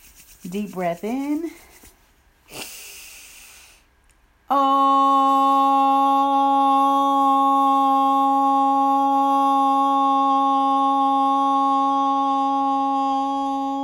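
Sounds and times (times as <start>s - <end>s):
speech: 0.4s - 1.7s, 4.5s - 4.8s
chanted Om tone: 4.5s - 13.8s.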